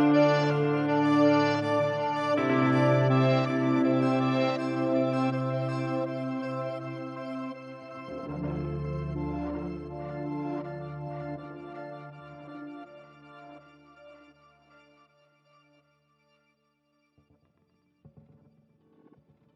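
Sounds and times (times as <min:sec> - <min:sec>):
ambient guitar effect from a multi-effects pedal: 0:00.0 - 0:13.6.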